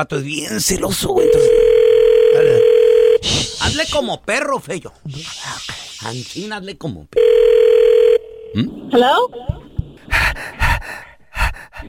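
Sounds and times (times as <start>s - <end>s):
speech: 0.0s - 1.8s, 3.2s - 7.3s, 8.5s - 9.5s
telephone dial tone of outgoing call: 1.2s - 3.2s, 7.2s - 8.5s.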